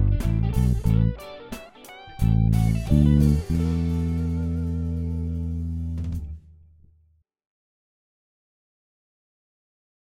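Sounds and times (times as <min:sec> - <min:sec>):
shuffle and funk bass: 0:00.0 - 0:06.7.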